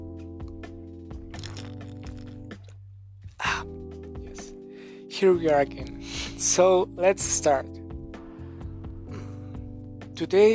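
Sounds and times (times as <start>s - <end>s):
person gulping and mouth clicks while drinking water: 1.3s - 2.8s
speech: 5.2s - 7.8s, 10.2s - 10.5s.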